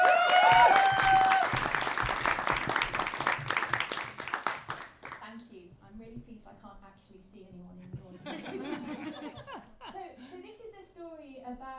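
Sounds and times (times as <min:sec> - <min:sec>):
audience applause for a performer being introduced: 0:00.0 - 0:05.2
laughter: 0:08.2 - 0:10.3.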